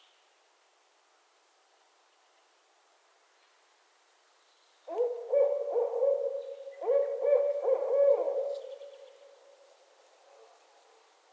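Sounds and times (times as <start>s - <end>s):
barred owl hooting: 4.9s - 9.4s.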